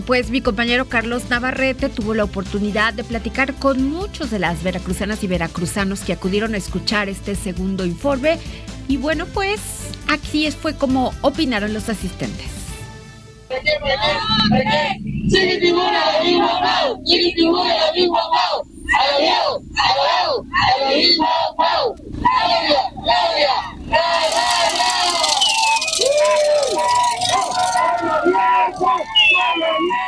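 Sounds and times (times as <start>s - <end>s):
speech: 0.0s - 12.6s, 13.5s - 25.3s
large crowd cheering and chanting at a rally in Veracruz: 13.5s - 30.0s.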